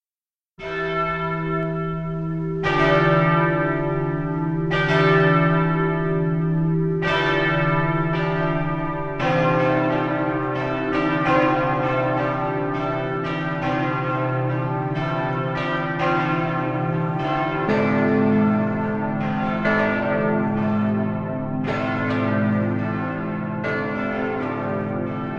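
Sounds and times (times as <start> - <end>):
bells ringing: 0.6 - 25.3.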